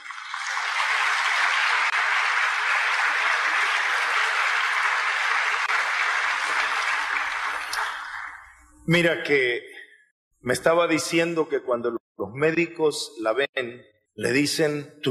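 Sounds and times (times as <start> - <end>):
audience applause: 0.0 - 8.6
speech: 8.9 - 9.7, 10.4 - 15.0.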